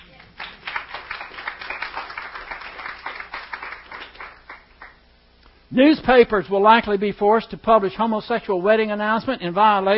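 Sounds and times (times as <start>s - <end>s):
audience clapping: 0.0s - 5.0s
speech: 5.7s - 9.9s.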